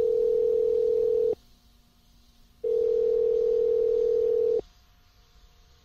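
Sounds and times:
telephone ringback tone on outgoing call: 0.0s - 1.4s, 2.6s - 4.6s.

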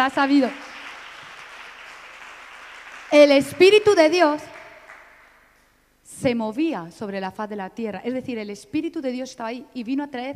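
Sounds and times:
speech: 0.0s - 0.7s, 3.1s - 4.5s, 6.1s - 10.3s
crowd clapping: 0.0s - 5.6s.

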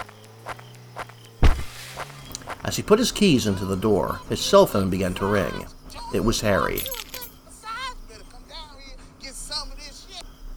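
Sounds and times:
footsteps walking: 0.0s - 4.7s
faint low hum: 0.0s - 10.5s
speech: 2.7s - 7.0s.

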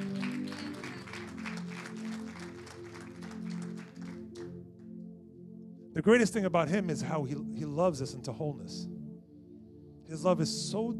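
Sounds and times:
audience applause: 0.0s - 4.6s
speech: 6.0s - 8.9s, 10.1s - 10.9s.

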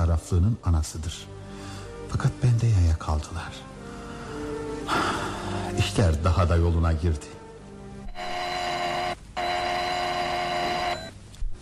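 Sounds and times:
speech: 0.2s - 1.4s, 2.1s - 7.4s
doorbell ringing: 8.1s - 11.1s.

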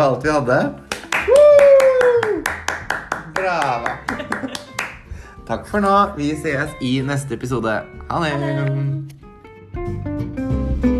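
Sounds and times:
speech: 0.0s - 1.4s, 3.4s - 4.7s, 5.5s - 9.2s
applause: 0.8s - 5.1s
laughter: 3.9s - 4.9s.

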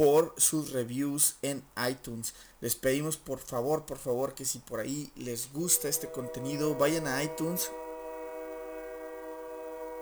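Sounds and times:
speech: 0.0s - 7.8s
passing train with a horn-like tone: 5.5s - 10.0s.

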